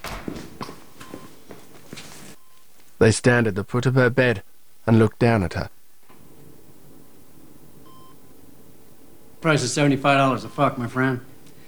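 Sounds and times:
footsteps of an orderly and a man walking into a room: 0:00.0 - 0:03.2, 0:05.9 - 0:11.6
faint hiss: 0:00.0 - 0:11.6
speech: 0:03.0 - 0:05.8, 0:09.4 - 0:11.3.

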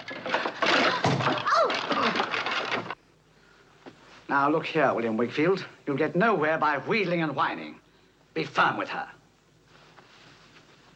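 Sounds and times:
tennis rackets tumbling out of storeroom: 0:00.0 - 0:03.0
speech: 0:04.4 - 0:07.8, 0:08.4 - 0:09.2.

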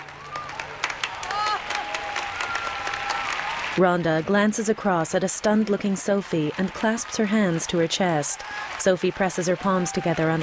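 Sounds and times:
people whooping: 0:00.0 - 0:03.8, 0:08.0 - 0:10.4
enthusiastic clapping from several people: 0:00.0 - 0:03.9, 0:05.3 - 0:10.4
speech: 0:03.8 - 0:10.4.

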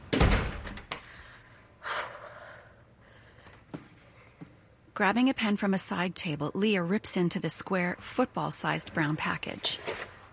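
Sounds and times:
front door closing: 0:00.0 - 0:01.0
speech: 0:05.0 - 0:10.1.

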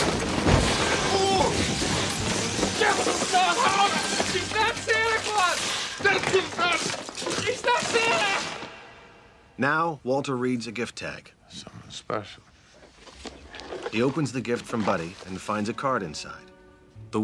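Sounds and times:
people crashing through tables holding models: 0:00.0 - 0:09.1
speech: 0:09.6 - 0:12.5, 0:13.9 - 0:16.5.

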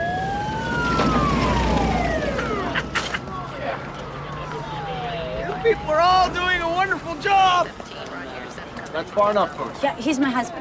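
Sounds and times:
ambulance siren wailing at nightfall: 0:00.0 - 0:07.7
steady low vehicle rumble: 0:00.0 - 0:09.0
speech: 0:09.0 - 0:10.5.

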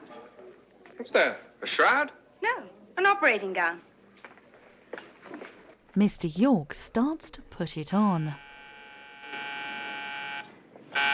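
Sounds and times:
speech: 0:01.0 - 0:03.9, 0:06.0 - 0:08.4
call light buzzing on the wall outside a private hospital room: 0:07.8 - 0:11.1.

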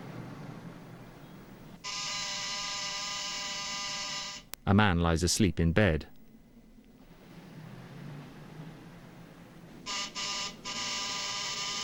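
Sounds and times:
entry phone doorbell buzzing: 0:01.8 - 0:04.5, 0:09.9 - 0:11.8
speech: 0:04.7 - 0:06.1.

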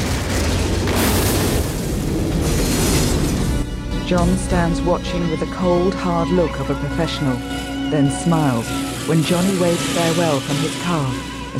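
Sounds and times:
huge explosion as a train plows into a limo: 0:00.0 - 0:05.4
speech: 0:04.1 - 0:11.5.

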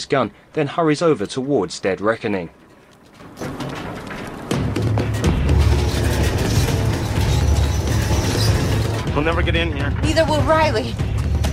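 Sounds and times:
speech: 0:00.0 - 0:02.6, 0:09.2 - 0:11.1
iron bridge mechanism lowering with heavy grinding rumble: 0:01.3 - 0:11.5
iron bridge mechanism clanks: 0:02.4 - 0:10.5.

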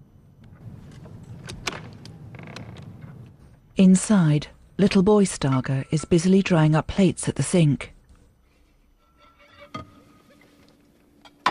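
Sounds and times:
house door opening: 0:00.5 - 0:03.6
speech: 0:03.8 - 0:08.0.

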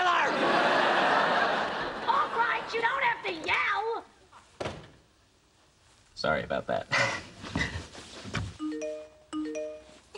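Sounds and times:
laughter: 0:00.2 - 0:02.8
speech: 0:06.2 - 0:07.7
mobile phone ringtone: 0:08.6 - 0:10.1.

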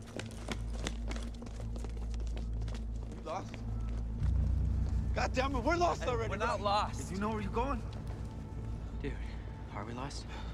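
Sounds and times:
footsteps of a small group jogging down a street onto a bridge: 0:00.0 - 0:05.2
low droning background: 0:00.0 - 0:10.5
speech: 0:03.3 - 0:03.6, 0:05.2 - 0:08.0, 0:09.0 - 0:10.5.

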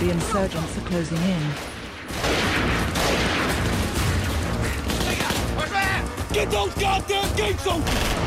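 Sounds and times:
speech: 0:00.1 - 0:02.4, 0:05.6 - 0:08.2
soldiers firing on closing insurgents: 0:01.1 - 0:05.6.

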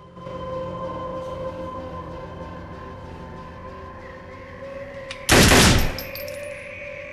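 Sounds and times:
humming tone: 0:00.0 - 0:07.1
gunfire in an audio drama: 0:05.3 - 0:06.0.

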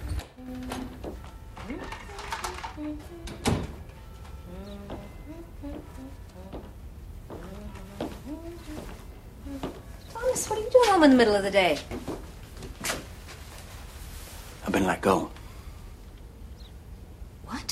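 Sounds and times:
front door opening and closing: 0:00.0 - 0:04.0
speech: 0:10.5 - 0:12.0, 0:14.9 - 0:15.4.

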